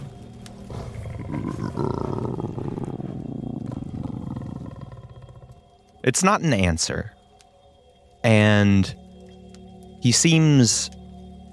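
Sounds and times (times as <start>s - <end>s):
low growl from deep within his chest: 0.7s - 5.8s
speech: 1.3s - 1.9s, 6.0s - 7.2s, 8.2s - 9.0s, 10.0s - 11.0s.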